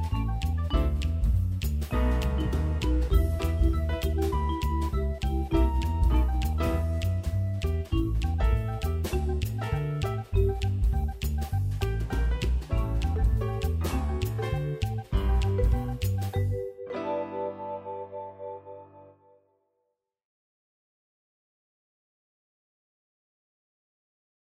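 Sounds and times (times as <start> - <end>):
backing music: 0.0 - 19.2.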